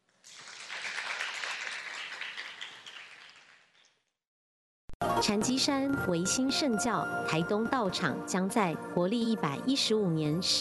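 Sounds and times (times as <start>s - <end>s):
audience applause: 0.3s - 3.7s
speech: 5.2s - 10.5s.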